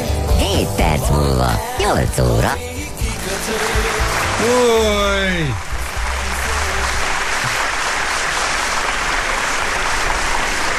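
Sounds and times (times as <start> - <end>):
speech: 0.6 - 2.7, 4.4 - 5.7
crowd applauding: 3.2 - 10.7.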